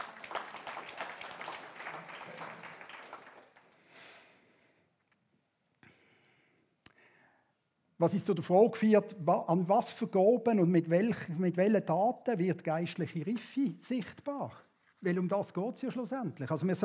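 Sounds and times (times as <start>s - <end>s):
audience applause: 0.0s - 3.9s
speech: 8.0s - 16.8s.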